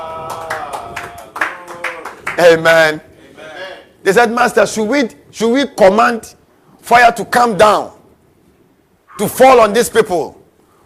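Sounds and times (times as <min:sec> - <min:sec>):
audience clapping hands: 0:00.0 - 0:02.6
speech: 0:02.4 - 0:03.1, 0:04.0 - 0:08.0, 0:09.2 - 0:10.4.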